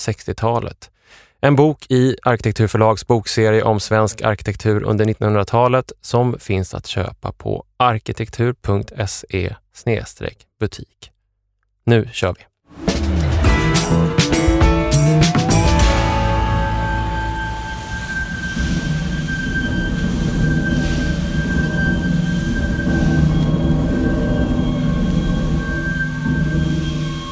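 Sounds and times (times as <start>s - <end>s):
speech: 0.0s - 11.1s, 11.9s - 12.9s, 13.9s - 14.2s
steam whistle of the River Don Engine, 1904 steam engine in Sheffield: 13.2s - 27.2s
hissing steam: 16.0s - 27.2s.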